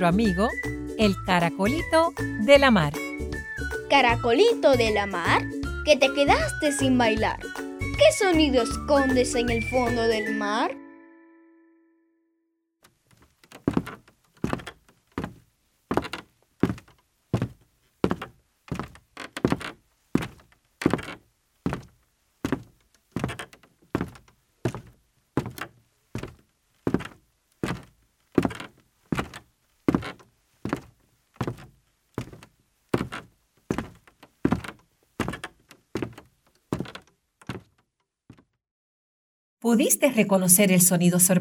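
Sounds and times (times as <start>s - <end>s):
speech: 0.0s - 3.0s, 3.9s - 10.8s, 39.7s - 41.3s
person's footsteps climbing stairs: 13.2s - 38.5s.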